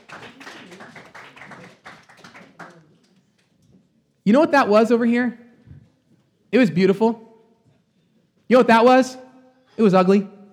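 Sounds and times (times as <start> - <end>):
audience clapping: 0.0 - 3.5
speech: 4.2 - 5.4, 6.5 - 7.2, 8.5 - 9.2, 9.8 - 10.5.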